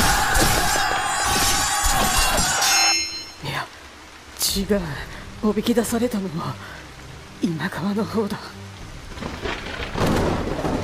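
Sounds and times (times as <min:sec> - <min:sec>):
rain: 0:00.0 - 0:10.8
speech: 0:04.6 - 0:06.8, 0:07.4 - 0:08.6
thunder: 0:09.1 - 0:10.8.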